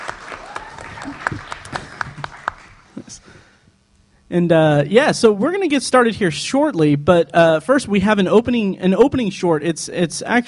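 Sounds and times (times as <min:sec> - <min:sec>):
audience applause: 0:00.0 - 0:02.9
speech: 0:04.3 - 0:10.4.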